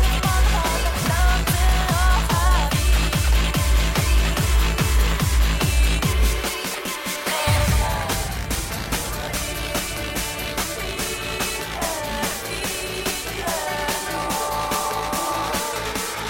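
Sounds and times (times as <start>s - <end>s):
hardstyle music: 0.0s - 16.2s
thunder: 7.5s - 12.1s.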